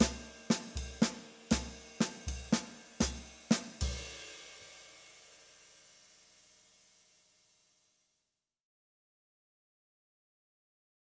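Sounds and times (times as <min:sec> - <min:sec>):
bop drumming warm-up: 0:00.0 - 0:04.5.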